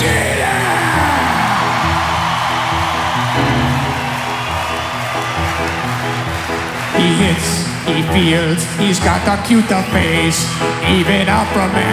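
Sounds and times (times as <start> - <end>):
large crowd applauding and cheering: 0.0 - 11.9
speech: 7.4 - 11.9.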